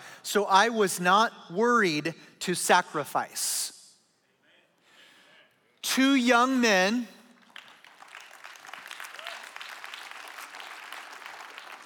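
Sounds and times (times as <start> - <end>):
speech: 0.3 - 3.6, 6.0 - 7.2
congregation clapping during a sermon at a church service: 7.4 - 11.8.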